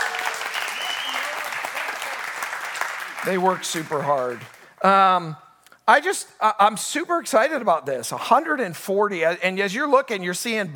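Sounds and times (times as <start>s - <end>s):
audience applause: 0.0s - 4.8s
speech: 3.2s - 10.7s.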